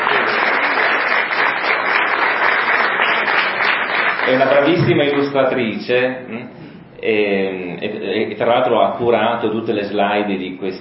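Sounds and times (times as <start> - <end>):
audience applause: 0.0 - 5.4
speech: 4.3 - 10.7.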